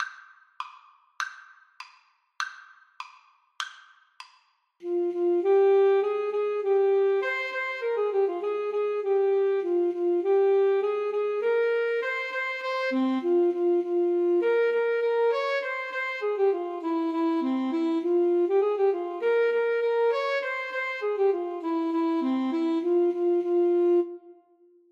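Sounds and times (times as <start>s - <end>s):
alto saxophone duet: 4.8s - 24.7s.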